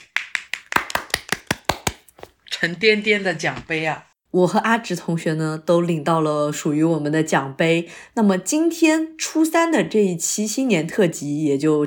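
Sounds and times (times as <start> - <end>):
clapping: 0.0 - 2.0
speech: 2.6 - 11.8.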